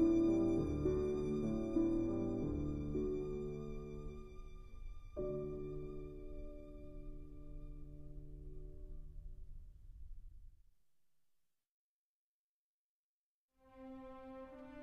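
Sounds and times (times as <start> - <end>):
violin: 0.0 - 8.6, 13.6 - 14.8
piano: 0.0 - 10.6, 13.6 - 14.8.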